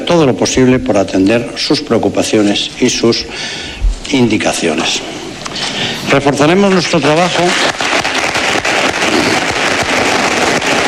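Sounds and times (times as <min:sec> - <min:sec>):
speech: 0:00.1 - 0:07.8
audience applause: 0:05.5 - 0:10.8.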